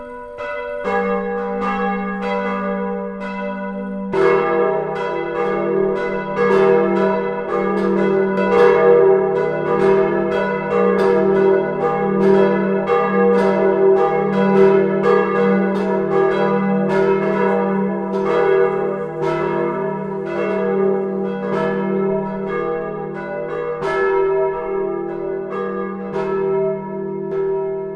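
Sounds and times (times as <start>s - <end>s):
bells of the Zionskirche ringing in a peal: 0.0s - 27.9s.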